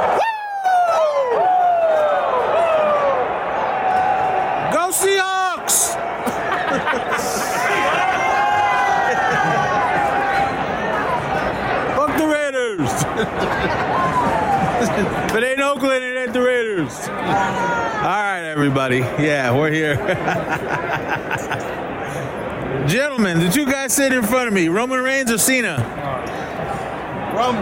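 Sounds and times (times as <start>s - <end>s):
wrestling arena crowd cheering wildly: 0.0s - 18.5s
laughter: 5.8s - 10.4s, 12.8s - 15.3s, 19.7s - 21.9s
speech: 18.6s - 26.4s, 27.4s - 27.6s.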